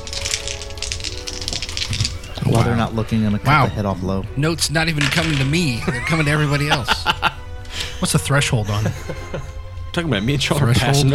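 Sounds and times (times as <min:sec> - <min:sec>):
dice rattling and clattering: 0:00.0 - 0:02.7, 0:05.0 - 0:05.8
speech: 0:02.5 - 0:07.1, 0:08.0 - 0:11.1
laughter: 0:05.7 - 0:09.6.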